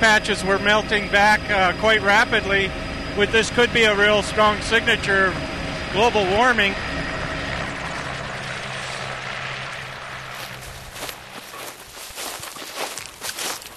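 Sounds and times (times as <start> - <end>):
speech: 0.0 - 7.0
helicopter landing: 0.0 - 13.7.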